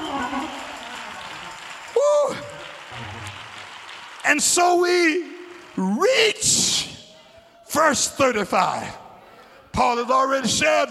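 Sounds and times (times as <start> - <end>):
crowd clapping hands in a dense steady burst of applause: 0.0 - 7.4
speech: 4.3 - 6.9, 7.7 - 9.0, 9.8 - 10.8.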